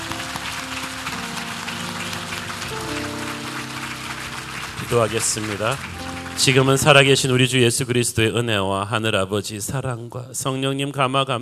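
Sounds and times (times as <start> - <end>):
audience applause: 0.0 - 7.7
speech: 4.9 - 11.3.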